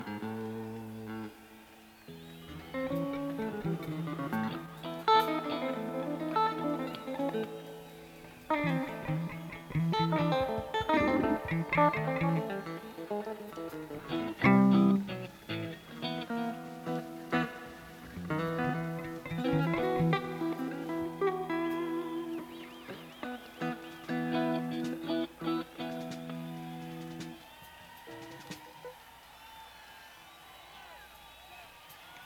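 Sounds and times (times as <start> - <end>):
instrument tuning: 2.3 - 27.4.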